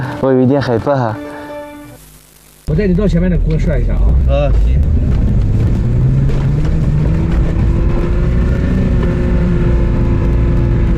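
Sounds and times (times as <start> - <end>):
speech: 0.2 - 1.3, 2.7 - 5.2
off-road vehicle engine revving while accelerating on soft sand: 2.8 - 10.9.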